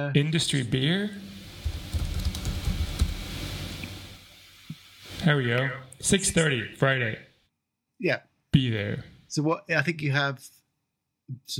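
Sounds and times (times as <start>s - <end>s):
speech: 0.0s - 1.3s, 5.2s - 7.3s, 8.0s - 10.6s, 11.3s - 11.5s
computer keyboard keystrokes typing a Google search: 1.6s - 3.2s.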